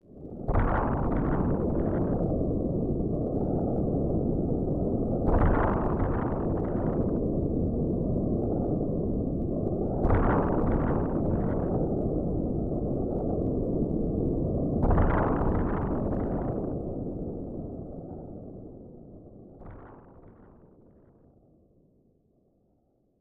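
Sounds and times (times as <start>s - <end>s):
wind: 0.0s - 23.0s
thunder: 0.4s - 2.5s, 5.2s - 7.2s, 9.9s - 13.2s, 14.8s - 17.0s.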